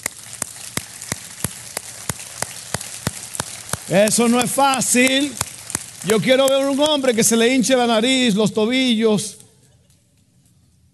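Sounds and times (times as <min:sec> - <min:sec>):
audience applause: 0:00.0 - 0:07.5
speech: 0:03.9 - 0:09.4.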